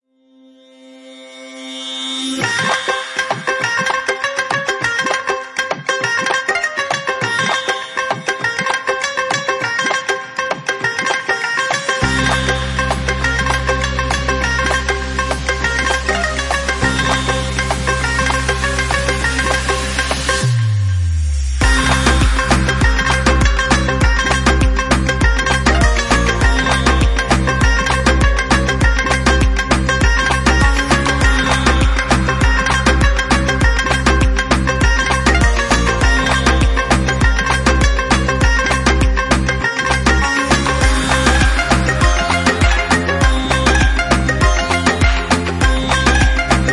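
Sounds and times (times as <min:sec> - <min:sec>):
Bollywood music: 0:00.8 - 0:46.7.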